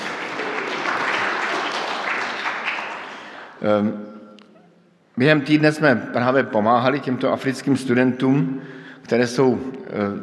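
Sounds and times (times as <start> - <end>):
audience applause: 0.0 - 3.5
speech: 3.6 - 4.2, 5.2 - 10.2.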